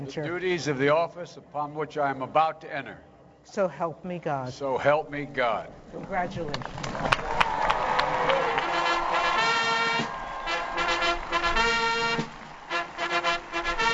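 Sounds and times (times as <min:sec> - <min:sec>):
speech: 0:00.0 - 0:07.2
crowd cheering on the National Mall after oath of office: 0:06.7 - 0:13.9.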